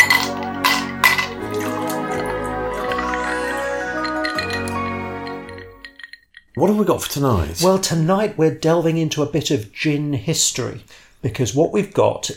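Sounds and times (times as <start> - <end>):
bottle being opened: 0.0 - 6.6
speech: 6.6 - 12.3.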